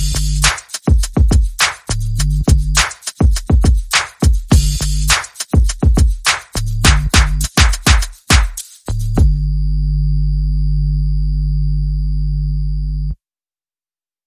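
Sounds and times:
bass: 0.0s - 0.6s, 1.4s - 2.9s, 4.5s - 5.3s, 5.9s - 13.2s
percussion: 0.0s - 9.5s.

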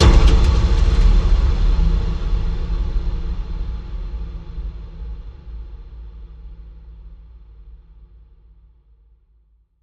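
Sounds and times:
low boom: 0.0s - 6.4s.

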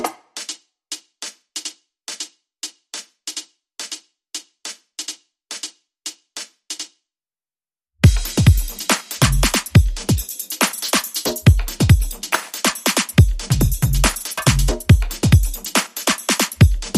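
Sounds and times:
drums: 0.0s - 4.0s, 8.0s - 16.9s.

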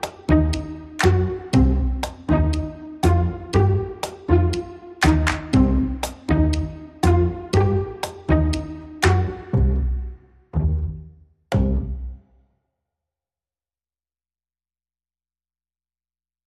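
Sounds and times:
percussion: 0.0s - 10.0s, 11.5s - 12.3s
bass: 0.0s - 12.3s.

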